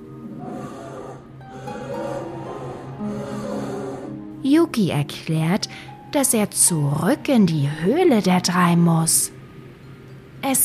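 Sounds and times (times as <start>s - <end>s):
polar bear mother calling: 0.1s - 4.3s
speech: 4.4s - 9.4s, 10.4s - 10.6s.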